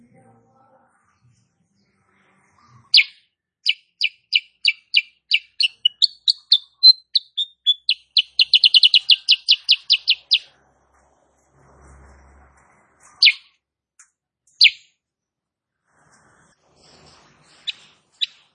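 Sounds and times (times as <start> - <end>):
female sooty-headed bulbul chirping song: 2.9 - 10.5, 13.2 - 13.5, 14.5 - 14.9.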